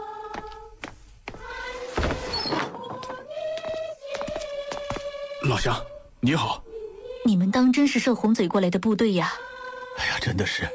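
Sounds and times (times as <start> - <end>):
door being opened: 1.8 - 3.2
speech: 5.5 - 6.6, 7.2 - 10.7.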